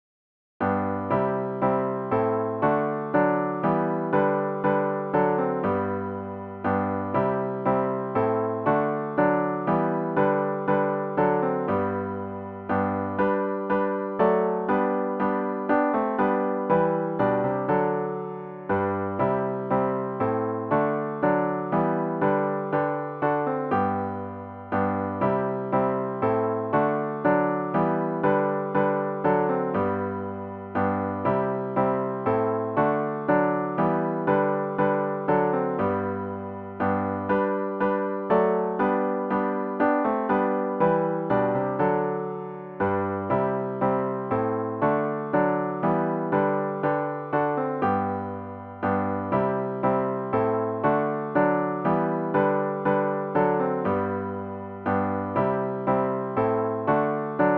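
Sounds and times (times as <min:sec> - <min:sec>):
solo piano: 0:00.6 - 0:57.5.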